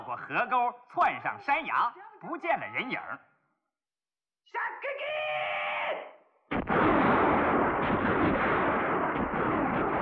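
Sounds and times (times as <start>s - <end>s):
speech: 0.1s - 3.3s, 4.5s - 5.2s
scattered gunfire echoing through a valley: 6.5s - 10.0s.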